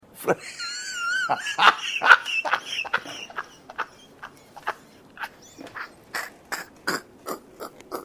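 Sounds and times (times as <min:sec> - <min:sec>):
person laughing: 0:00.3 - 0:08.0.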